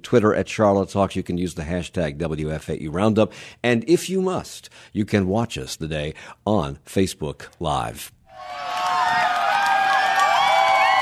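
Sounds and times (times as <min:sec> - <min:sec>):
speech: 0:00.0 - 0:08.6
crowd cheering at a solar eclipse: 0:08.3 - 0:11.0.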